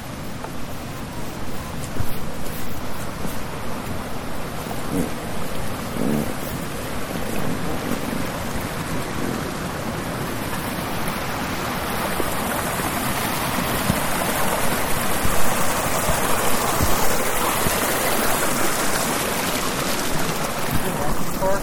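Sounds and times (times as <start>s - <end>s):
storm rain: 0.2s - 21.6s.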